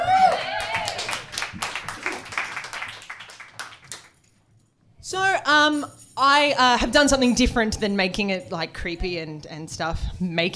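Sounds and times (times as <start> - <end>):
round of applause: 0.1 - 4.3
speech: 5.1 - 10.5.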